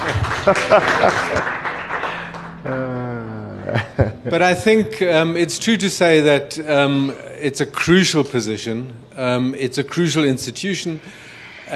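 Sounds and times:
audience round of applause: 0.0s - 3.0s
laughter: 0.0s - 4.9s
speech: 0.4s - 1.6s, 3.7s - 11.7s.

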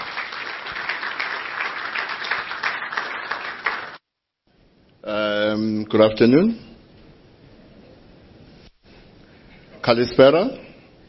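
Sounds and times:
audience applause as speaker takes stage: 0.0s - 4.0s
speech: 5.1s - 6.7s, 9.9s - 10.7s.

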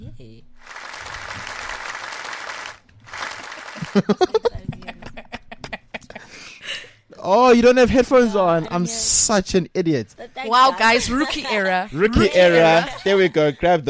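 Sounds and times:
speech: 0.0s - 0.8s, 3.9s - 4.4s, 7.3s - 13.8s
crowd round of applause: 0.6s - 4.2s
laughter: 3.3s - 6.3s, 11.0s - 13.8s.

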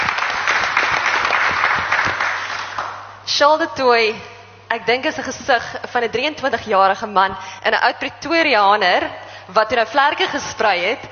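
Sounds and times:
audience applause: 0.0s - 3.0s
speech: 3.4s - 11.1s.

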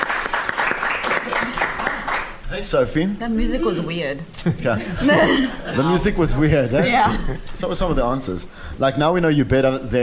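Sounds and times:
audience clapping: 0.0s - 2.4s
speech: 2.6s - 10.0s.

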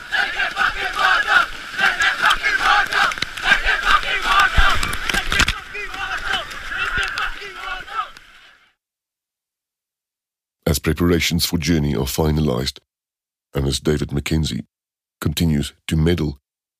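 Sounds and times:
children chanting while diving into sea waves: 0.0s - 8.6s
sea waves: 0.0s - 8.7s
speech: 10.8s - 12.9s, 13.5s - 16.4s.

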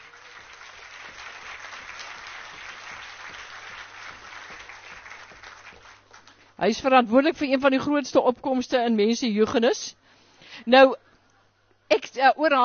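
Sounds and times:
audience applause: 0.0s - 6.4s
speech: 6.6s - 10.0s, 10.6s - 11.0s, 11.9s - 12.6s.

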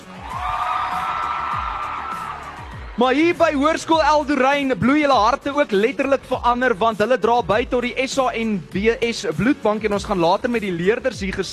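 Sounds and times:
whoops: 0.0s - 3.0s
crowd applauding and cheering: 0.0s - 6.3s
speech: 3.0s - 11.5s.

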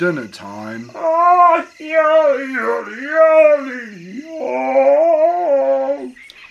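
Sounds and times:
speech: 0.0s - 5.2s
voice imitating a hyena singing loudly: 0.9s - 6.2s.

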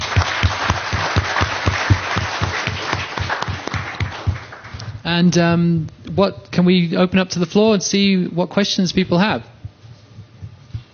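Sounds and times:
audience applause for panelists: 0.0s - 4.9s
speech: 5.1s - 9.5s.

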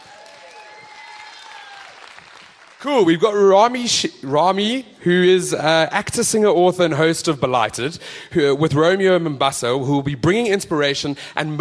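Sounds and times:
crowd applause: 0.0s - 3.0s
speech: 2.8s - 11.5s.

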